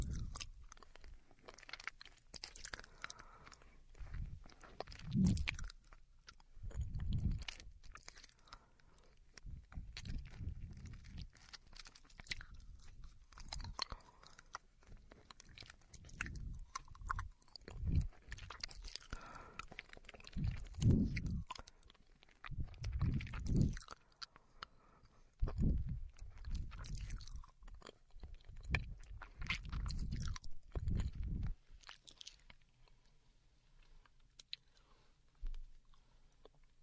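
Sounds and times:
mouth smacking: 0.0 - 1.8, 2.4 - 8.7, 9.4 - 31.6
woman chewing and crunching candy: 0.0 - 33.2, 33.8 - 34.9.

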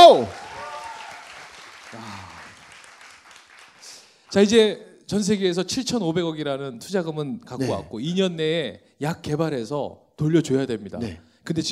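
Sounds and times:
studio applause: 0.0 - 4.6
speech: 0.1 - 0.4, 4.3 - 11.7.

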